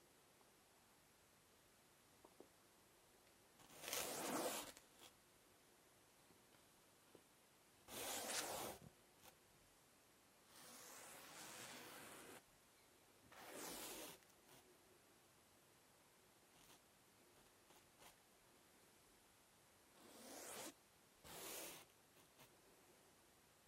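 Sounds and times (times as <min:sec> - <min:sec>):
sketching: 0:03.6 - 0:05.2, 0:07.9 - 0:09.4, 0:10.5 - 0:12.4, 0:13.3 - 0:14.7, 0:16.5 - 0:18.2, 0:20.0 - 0:22.6.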